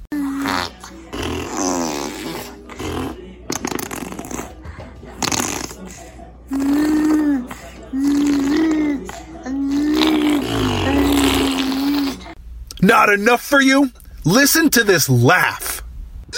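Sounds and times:
baby making arm fart noises: 0.2s - 5.9s, 6.5s - 12.4s
speech: 12.9s - 15.7s.

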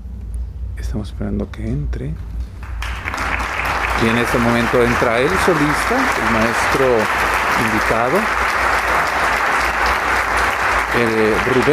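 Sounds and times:
speech: 0.8s - 2.5s, 4.0s - 8.5s, 11.0s - 11.7s
concert audience applause: 2.6s - 11.7s.

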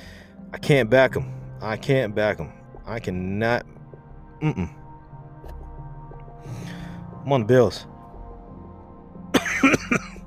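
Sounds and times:
speech: 0.6s - 3.7s, 4.4s - 4.8s, 7.2s - 7.9s, 9.6s - 10.1s
person coughing: 4.4s - 4.8s, 9.3s - 10.2s.

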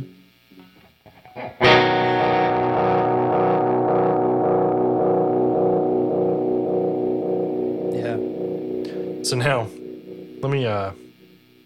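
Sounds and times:
600 millisecond delay effect with boosted feedback, distorted lo-fi repeats: 2.7s - 11.6s
speech: 9.3s - 9.8s, 10.4s - 11.0s.

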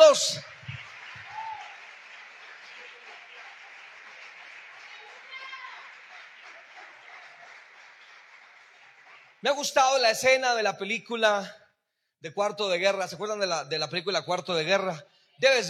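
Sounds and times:
crowd cheering: 0.0s - 9.7s
audience applauding: 0.0s - 9.8s
speech: 0.1s - 0.5s, 9.4s - 11.6s, 12.2s - 15.6s.

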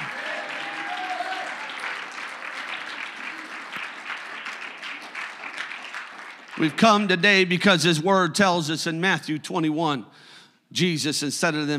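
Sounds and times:
audience clapping hands and shouting: 0.0s - 7.2s
speech: 6.6s - 11.7s.

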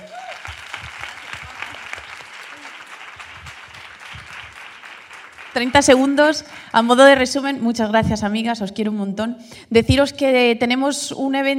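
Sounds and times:
audience applause: 0.0s - 6.7s
speech: 5.6s - 11.5s.

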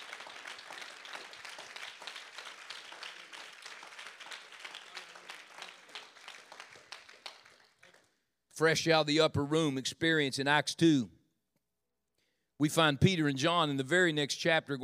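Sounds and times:
audience clapping hands: 0.0s - 8.2s
speech: 8.6s - 11.2s, 12.6s - 14.8s.

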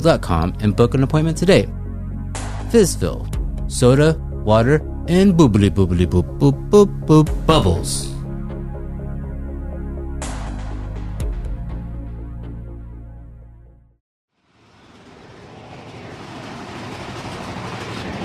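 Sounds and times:
speech: 0.0s - 1.8s, 2.7s - 8.1s
loud steady rushing roar: 14.4s - 18.2s
roller coaster train rattling along its track on Big Thunder Mountain: 15.3s - 18.2s.

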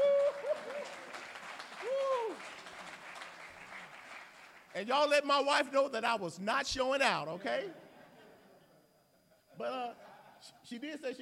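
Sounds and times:
audience applause: 0.0s - 4.7s
speech: 4.8s - 7.8s, 9.6s - 11.2s.

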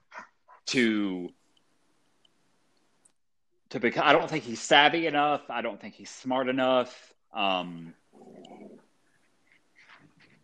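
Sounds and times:
speech: 0.7s - 1.4s, 3.7s - 8.5s
Labrador dog growling: 8.1s - 8.8s.

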